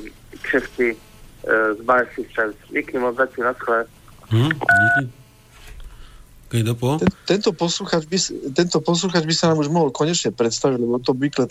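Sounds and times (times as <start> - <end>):
faint low hum: 0.0 - 11.4
speech: 0.5 - 5.2, 6.5 - 11.4
telephone line beep as a caller hangs up: 4.6 - 5.1.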